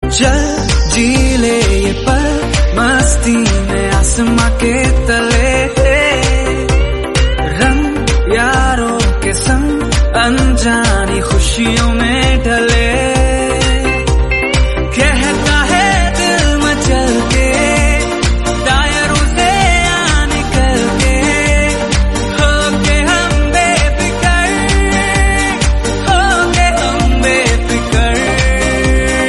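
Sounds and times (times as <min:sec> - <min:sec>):
Hindi song: 0:00.0 - 0:29.2.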